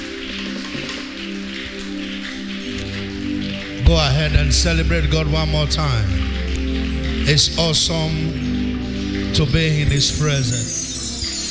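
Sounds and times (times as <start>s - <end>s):
audience clapping: 0.0s - 11.4s
speech: 3.9s - 6.2s, 7.2s - 8.4s, 9.3s - 10.8s.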